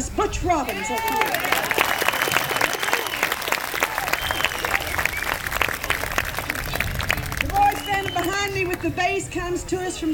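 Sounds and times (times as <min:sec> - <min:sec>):
speech: 0:00.2 - 0:01.9, 0:08.4 - 0:10.1
audience applause welcoming a banjo player from Virginia: 0:00.7 - 0:09.0.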